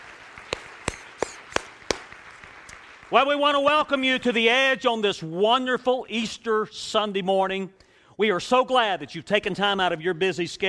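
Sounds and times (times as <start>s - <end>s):
audience hand claps: 0.0s - 3.4s
speech: 3.1s - 10.6s.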